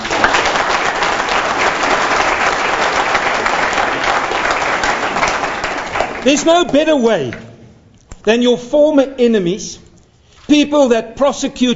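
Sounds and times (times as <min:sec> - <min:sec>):
crowd applause: 0:00.0 - 0:06.7
speech: 0:06.2 - 0:07.4, 0:08.2 - 0:09.8, 0:10.5 - 0:11.7.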